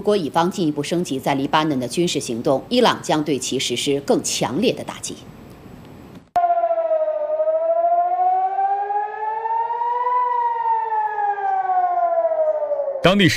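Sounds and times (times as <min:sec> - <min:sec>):
speech: 0:00.0 - 0:05.4, 0:13.1 - 0:13.3
air raid siren wailing in northern Israel: 0:06.4 - 0:13.3.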